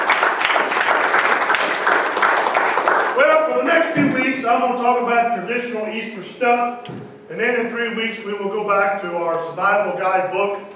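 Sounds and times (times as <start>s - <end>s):
church audience applause: 0.0s - 3.6s
speech: 3.7s - 10.7s.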